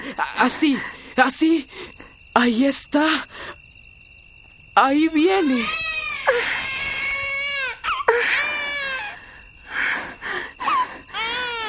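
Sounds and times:
speech: 0.2s - 3.6s, 4.8s - 6.6s
newborn baby girl crying just after birth: 5.4s - 9.2s, 10.6s - 11.6s.

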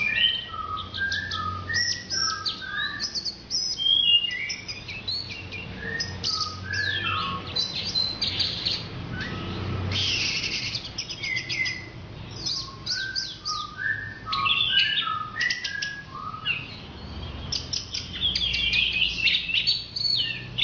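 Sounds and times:
orange-headed thrush chattering and whistling: 0.0s - 20.6s.

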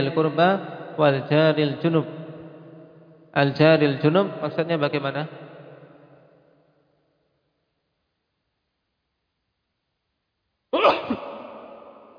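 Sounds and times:
speech: 0.0s - 2.2s, 3.4s - 5.4s
person sneezing: 10.8s - 12.1s.

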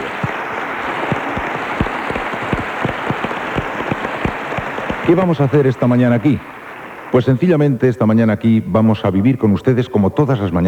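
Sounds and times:
crowd applause: 0.0s - 7.5s
speech: 5.1s - 6.5s, 7.1s - 10.6s.

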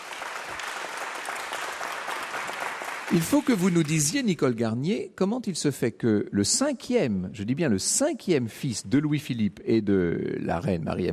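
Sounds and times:
live audience at Chantilly castle applauding: 0.0s - 4.4s
speech: 3.1s - 11.1s.

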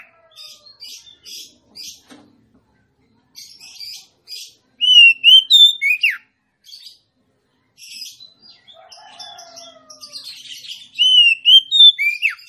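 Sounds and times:
female Oriental magpie-robin singing rich whistled notes: 4.8s - 6.2s, 11.0s - 12.4s.

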